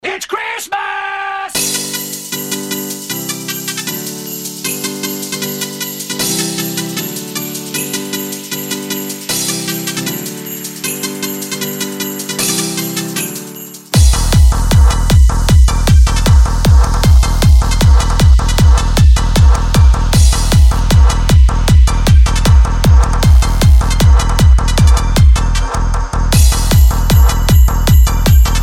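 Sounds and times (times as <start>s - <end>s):
Christmas hardbass music: 14.0s - 28.6s.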